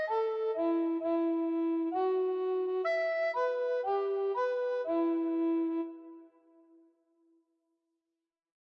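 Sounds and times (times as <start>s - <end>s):
tenor recorder playing a sarabande in a recorder quartet: 0.0s - 6.4s.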